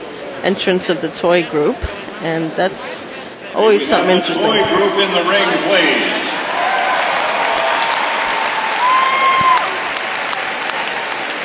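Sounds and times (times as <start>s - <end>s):
speech: 0.4s - 6.3s
dog show audience clapping: 6.3s - 11.4s
whoop or whistle: 8.8s - 9.8s.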